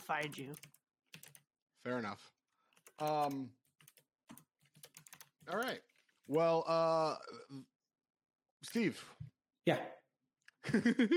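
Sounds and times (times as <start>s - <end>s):
typing on a computer keyboard: 0.0s - 1.5s, 2.7s - 6.3s
speech: 0.1s - 0.8s, 1.8s - 2.4s, 3.0s - 3.6s, 5.5s - 7.7s, 8.6s - 10.0s, 10.6s - 11.1s
laughter: 10.6s - 11.1s.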